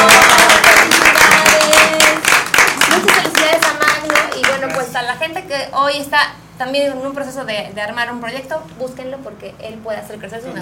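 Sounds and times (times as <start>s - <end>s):
audience applause: 0.0s - 4.8s
speech: 5.7s - 10.6s.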